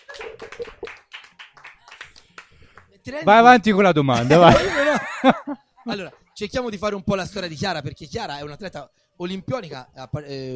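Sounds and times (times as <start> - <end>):
laughter: 0.0 - 1.0, 4.1 - 6.1
applause: 0.0 - 3.0
speech: 3.1 - 10.5.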